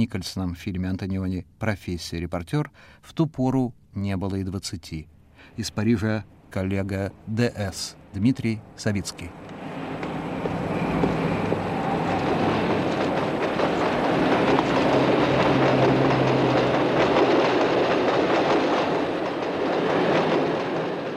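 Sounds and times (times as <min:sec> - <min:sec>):
speech: 0:00.0 - 0:09.5
elevated metro train of line 6 rumbling overhead on the Passy viaduct: 0:05.5 - 0:21.1.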